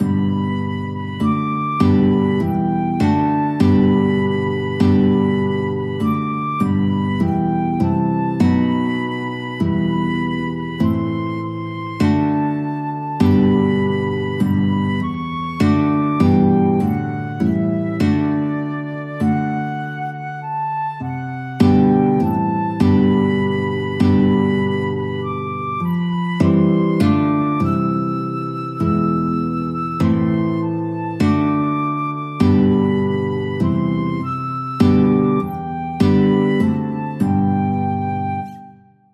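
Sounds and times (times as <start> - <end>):
flute: 0.0 - 39.1
guitar: 0.0 - 39.1.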